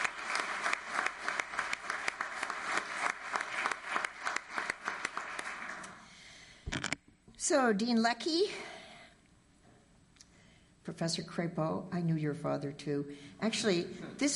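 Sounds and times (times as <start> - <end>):
audience applause: 0.0 - 6.0
speech: 7.5 - 8.7, 11.0 - 14.3.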